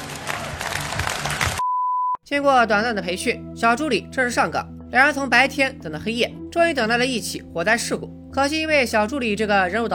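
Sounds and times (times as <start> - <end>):
applause: 0.0 - 1.6
speech: 2.3 - 9.9.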